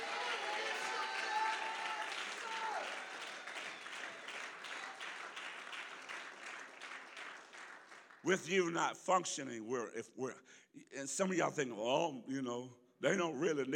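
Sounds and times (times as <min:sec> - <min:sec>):
church congregation clapping: 0:00.0 - 0:08.8
speech: 0:08.2 - 0:13.7.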